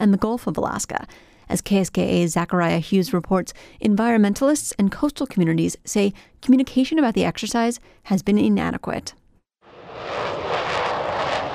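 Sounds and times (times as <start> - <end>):
speech: 0.0 - 9.2
fighter planes taking off at Joint Base Elmendorf-Richardson: 9.7 - 11.5.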